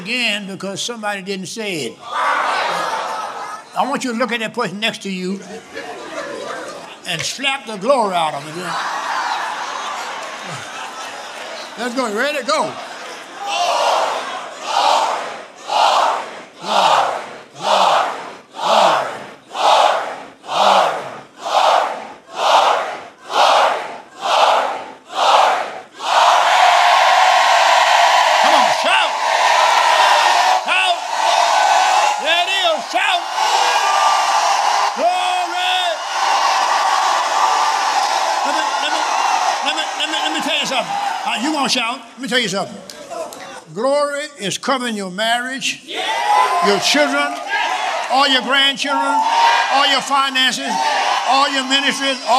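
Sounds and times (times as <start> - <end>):
speech: 0.0 - 3.1, 3.7 - 6.0, 7.1 - 9.0, 11.8 - 12.9, 41.7 - 42.8, 43.8 - 47.4, 48.1 - 52.3
crowd shouting: 2.0 - 3.7, 8.4 - 41.9, 45.9 - 52.3
laughter: 2.6 - 3.9, 5.2 - 7.4, 8.4 - 13.5, 38.4 - 40.7.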